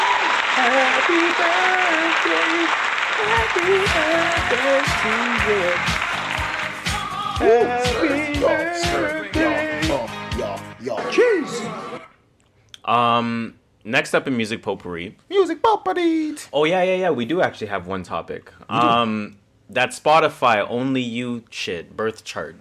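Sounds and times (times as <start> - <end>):
applause: 0.0 - 8.0
speech: 0.6 - 6.0, 7.4 - 12.0, 12.9 - 22.6.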